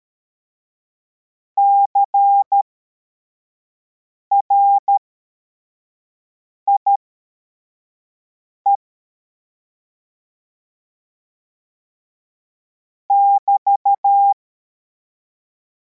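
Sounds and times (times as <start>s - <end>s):
CW morse code beeps: 1.6s - 2.7s, 4.3s - 5.0s, 13.1s - 14.4s.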